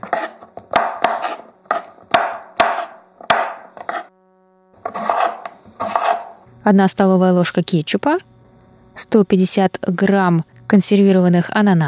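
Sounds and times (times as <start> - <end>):
knife chopping bell peppers on a board: 0.0 - 4.1, 4.8 - 6.4
speech: 6.6 - 8.3, 9.0 - 11.8.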